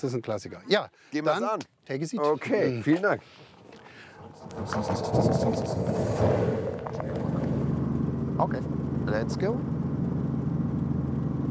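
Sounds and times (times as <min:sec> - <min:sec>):
speech: 0:00.0 - 0:07.2, 0:08.4 - 0:09.8
Robinson helicopter piston engine starting up: 0:03.5 - 0:11.4.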